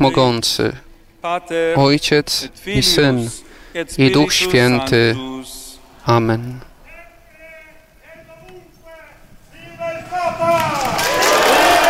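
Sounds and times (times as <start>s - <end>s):
speech: 0.0s - 6.7s
crowd cheering: 6.8s - 11.8s.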